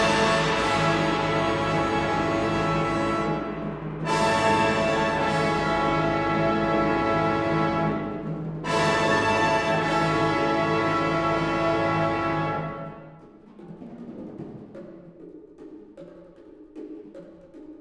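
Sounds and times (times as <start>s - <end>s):
wind orchestra: 0.0s - 13.3s.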